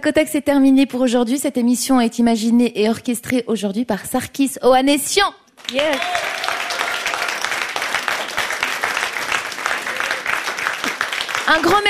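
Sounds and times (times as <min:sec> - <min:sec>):
speech: 0:00.0 - 0:06.2, 0:11.5 - 0:11.8
studio audience applauding: 0:05.6 - 0:11.8.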